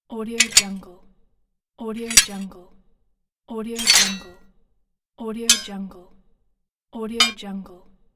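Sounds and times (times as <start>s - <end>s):
metal clink: 0.4s - 0.8s, 2.1s - 2.4s, 3.8s - 4.3s, 5.5s - 5.7s, 7.2s - 7.4s.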